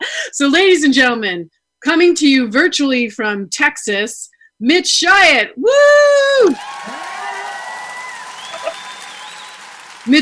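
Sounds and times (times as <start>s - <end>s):
speech: 0.4s - 7.0s, 10.0s - 10.2s
virtual audience cheering and applause: 6.4s - 10.2s.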